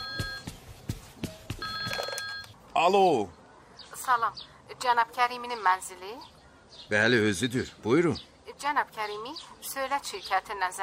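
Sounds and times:
telephone bell ringing: 0:00.0 - 0:00.5, 0:01.6 - 0:02.6
speech: 0:02.8 - 0:03.4, 0:04.0 - 0:10.8.

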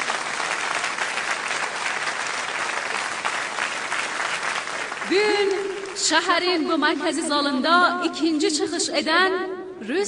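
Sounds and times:
large audience applause in a central city hall: 0:00.0 - 0:06.1
speech: 0:05.1 - 0:10.0.

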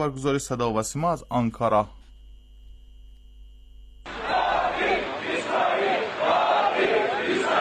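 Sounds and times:
speech: 0:00.0 - 0:02.0
angry crowd of protesters chanting in Ankara, Turkey over the Al-Aqsa mosque: 0:04.1 - 0:07.5.

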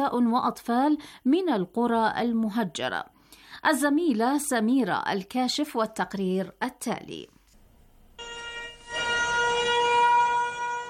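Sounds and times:
speech: 0:00.0 - 0:07.4
air raid sirens wailing: 0:08.2 - 0:10.8.

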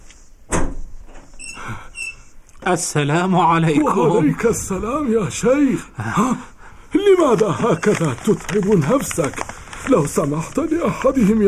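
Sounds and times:
door being opened: 0:00.5 - 0:02.3
speech: 0:02.6 - 0:06.5, 0:07.1 - 0:11.4.

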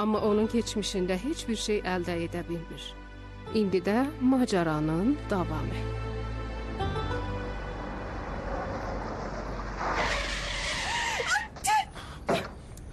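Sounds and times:
speech: 0:00.0 - 0:06.1
car engine hum in a radio drama: 0:07.0 - 0:11.4
car brakes screeching as it nearly runs over a pedestrian: 0:07.7 - 0:11.9.

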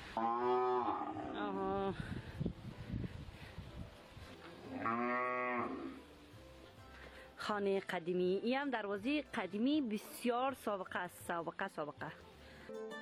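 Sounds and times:
speech: 0:00.1 - 0:00.5, 0:01.5 - 0:02.3, 0:07.5 - 0:12.9
cattle mooing in a village: 0:00.2 - 0:01.7, 0:04.7 - 0:06.0.

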